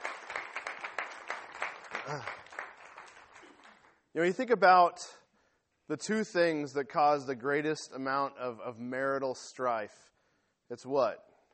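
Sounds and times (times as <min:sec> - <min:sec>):
audience applause: 0:00.0 - 0:04.0
speech: 0:02.1 - 0:02.4, 0:04.2 - 0:05.2, 0:05.9 - 0:10.1, 0:10.7 - 0:11.3.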